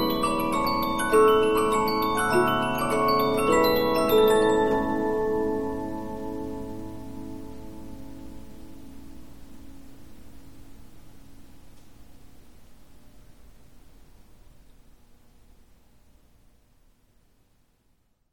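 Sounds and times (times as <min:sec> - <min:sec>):
Polyphon 15-inch disc music box playing: 0:00.0 - 0:06.7.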